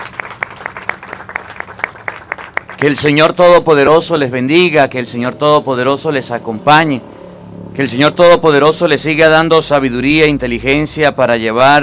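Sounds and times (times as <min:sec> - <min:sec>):
clapping: 0:00.0 - 0:03.2
speech: 0:02.8 - 0:07.1, 0:07.8 - 0:11.8.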